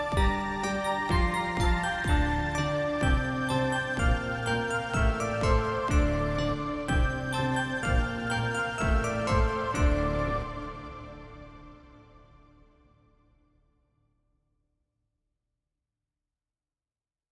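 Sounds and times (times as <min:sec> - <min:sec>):
flute: 0:00.0 - 0:12.5.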